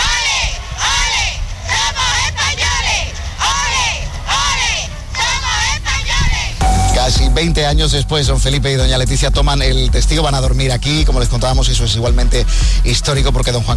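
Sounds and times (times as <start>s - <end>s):
crowd chanting: 0.0s - 8.1s
speech: 7.4s - 13.7s.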